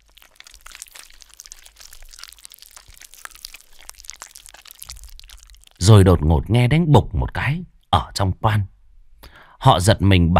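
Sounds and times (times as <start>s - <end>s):
wet squelching chewing beside a coffin: 0.0s - 5.9s
speech: 5.9s - 8.7s, 9.6s - 10.3s.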